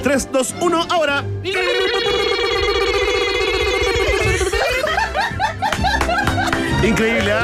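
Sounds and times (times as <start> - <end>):
speech: 0.1 - 2.4, 6.8 - 7.4
Thompson alarm with buzzing tone and warbling chirps: 1.5 - 4.4
laughter: 1.5 - 7.4.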